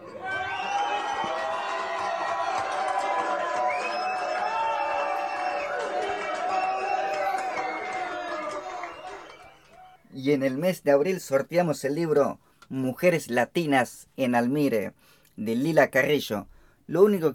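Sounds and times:
audience ovation and cheering: 0.0s - 10.1s
speech: 10.2s - 17.3s.

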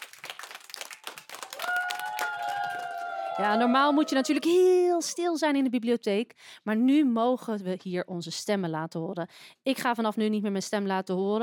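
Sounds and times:
applause: 0.0s - 4.7s
speech: 3.4s - 11.4s.

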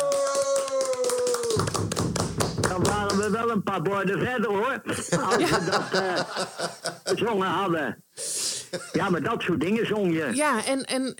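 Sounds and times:
crowd clapping: 0.0s - 3.5s
speech: 1.6s - 2.1s, 2.8s - 11.1s
laughter: 4.9s - 7.4s, 8.7s - 9.1s.

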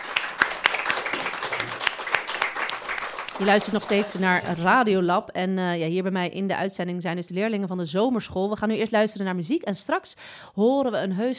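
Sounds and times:
audience applause: 0.0s - 4.8s
speech: 3.4s - 11.3s.

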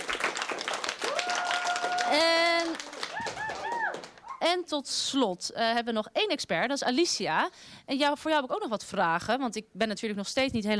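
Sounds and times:
audience applause: 0.0s - 4.4s
loud audience cheering whoops: 1.0s - 4.4s
speech: 4.4s - 10.7s.

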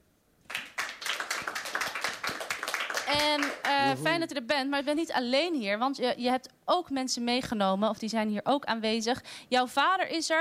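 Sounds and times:
television talk show audience applauding a guest: 0.5s - 4.2s
speech: 3.1s - 10.3s.

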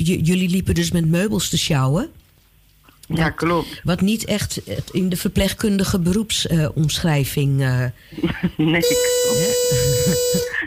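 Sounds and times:
speech: 0.0s - 2.2s, 3.1s - 10.6s
laughter: 8.2s - 10.6s
buzzer hooter blaring: 8.8s - 10.6s.

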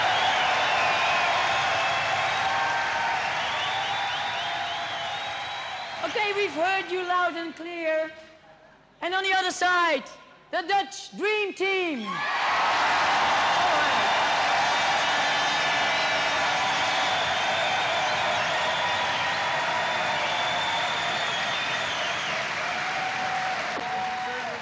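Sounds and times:
crowd applause: 0.0s - 6.7s, 12.2s - 24.6s
voices cheering: 0.0s - 6.8s, 12.1s - 24.6s
speech: 6.3s - 8.3s, 9.0s - 12.4s.

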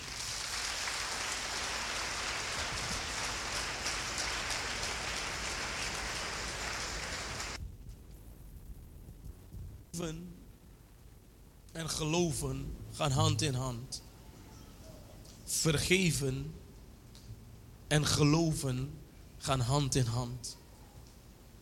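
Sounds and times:
audience applauding: 0.0s - 7.6s
speech: 10.0s - 10.4s, 11.8s - 14.1s, 15.5s - 16.6s, 17.9s - 20.6s.

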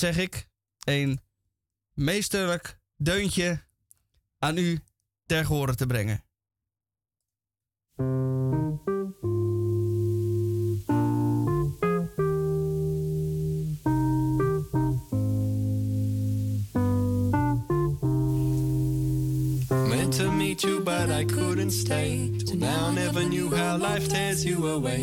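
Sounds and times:
speech: 0.0s - 1.2s, 2.0s - 3.7s, 4.4s - 6.2s, 8.0s - 8.9s, 20.6s - 25.0s
guitar being tuned: 8.0s - 24.9s.

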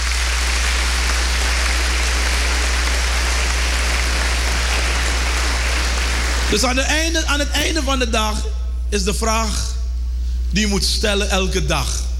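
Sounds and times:
audience applause: 0.0s - 6.7s
speech: 6.5s - 9.8s, 10.5s - 12.1s.

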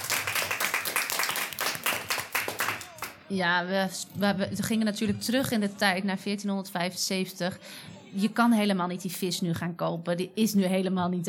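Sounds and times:
audience applause for actors: 0.0s - 3.2s
speech: 3.3s - 11.2s.

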